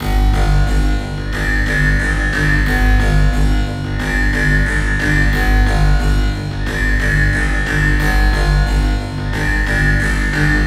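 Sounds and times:
robotic percussion beat: 0:00.0 - 0:10.6.

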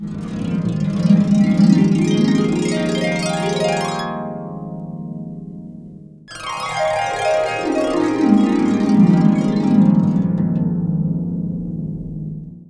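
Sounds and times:
harp: 0:00.0 - 0:12.6.

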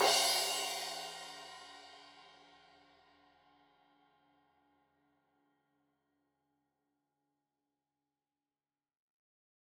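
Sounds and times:
15 inch crash cymbal edge hit: 0:00.0 - 0:02.0.

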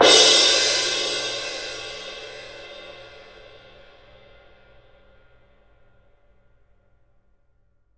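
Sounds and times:
cymbal: 0:00.0 - 0:06.2.

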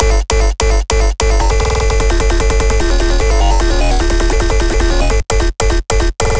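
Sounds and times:
cyber bass loops: 0:00.0 - 0:06.3.

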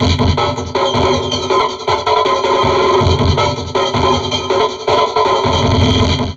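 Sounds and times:
heavily processed drum loop: 0:00.0 - 0:06.3.

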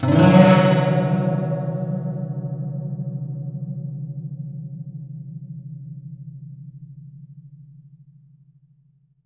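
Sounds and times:
guqin plucked: 0:00.0 - 0:02.6.

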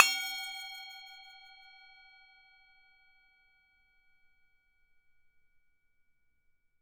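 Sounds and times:
Tibetan singing bowl: 0:00.0 - 0:05.3.

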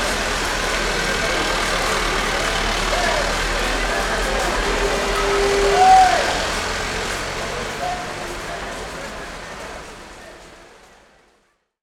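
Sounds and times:
Arabian traditional ambience: 0:00.0 - 0:08.6.

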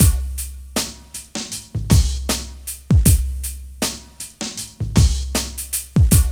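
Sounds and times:
hip hop groove at 78 bpm: 0:00.0 - 0:06.3.

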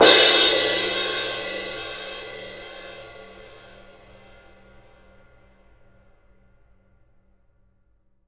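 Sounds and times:
cymbal: 0:00.0 - 0:06.2.

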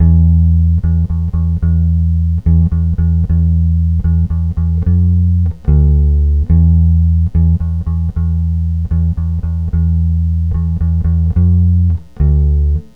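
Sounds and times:
lounge bass E note: 0:00.0 - 0:12.9.

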